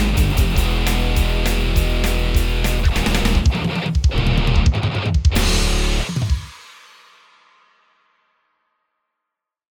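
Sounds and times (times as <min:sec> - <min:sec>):
riff: 0:00.0 - 0:07.4.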